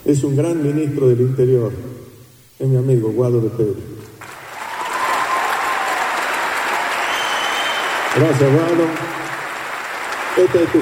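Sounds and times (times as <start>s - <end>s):
speech: 0.0s - 2.0s, 2.6s - 3.9s, 8.2s - 9.2s, 10.4s - 10.8s
applause: 4.2s - 10.8s.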